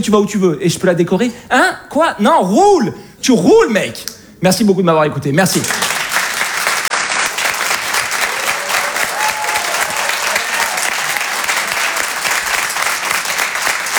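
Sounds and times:
speech: 0.0 - 5.9
audience applause: 5.6 - 13.9.

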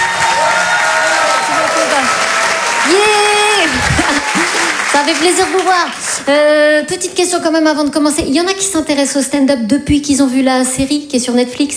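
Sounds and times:
whoops and shouts from comedy club audience: 0.0 - 4.9
comedy club audience applauding a stand-up comedian: 0.0 - 7.2
speech: 5.0 - 11.7.

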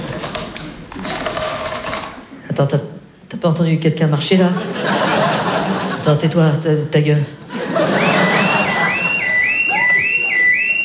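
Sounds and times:
speech: 2.6 - 5.0, 6.0 - 8.1
laughter: 4.5 - 6.2, 7.4 - 10.8
alarm going off: 8.0 - 10.8.

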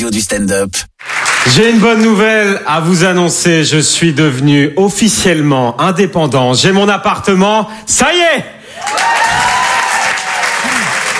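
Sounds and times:
speech: 0.0 - 9.5
audience applause: 1.0 - 2.0, 8.8 - 11.1
faint cheer: 8.8 - 11.1.

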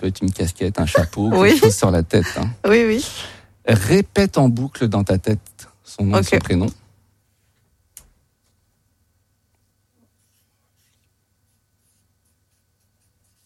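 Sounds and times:
speech: 0.0 - 6.8
pen scratching on surface: 10.2 - 13.4.

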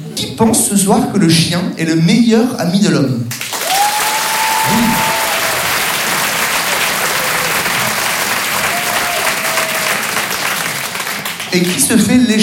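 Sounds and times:
speech: 0.4 - 3.4, 4.7 - 5.1, 11.6 - 12.4
large audience applauding: 3.3 - 12.0.

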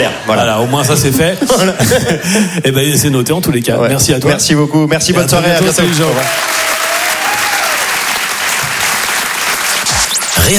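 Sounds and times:
laughter: 0.0 - 2.6
speech: 0.0 - 6.8, 10.4 - 10.5
audience applause: 5.6 - 10.4.

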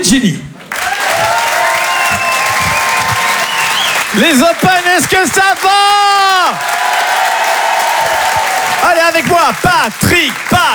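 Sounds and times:
speech: 0.1 - 0.5, 4.2 - 7.3, 8.0 - 10.7
audience applause: 0.6 - 10.7.

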